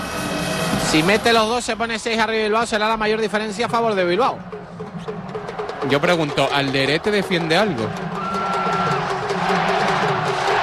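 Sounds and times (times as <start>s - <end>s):
speech: 0.9s - 4.6s, 5.8s - 8.0s
basketball crowd roaring at a Bilbao game in the Santiago Martín arena: 5.1s - 10.6s.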